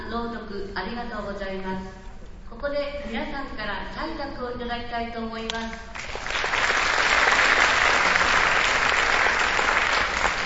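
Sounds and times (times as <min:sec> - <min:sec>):
speech: 0:00.1 - 0:06.2
loud applause: 0:06.0 - 0:10.4.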